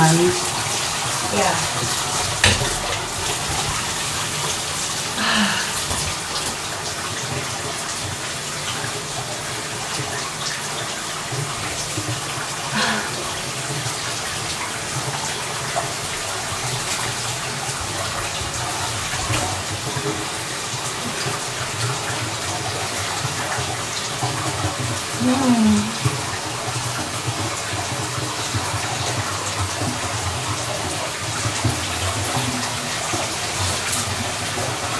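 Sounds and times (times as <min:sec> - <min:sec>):
speech: 0:00.0 - 0:00.6, 0:01.3 - 0:02.9
shower water running: 0:00.0 - 0:34.9.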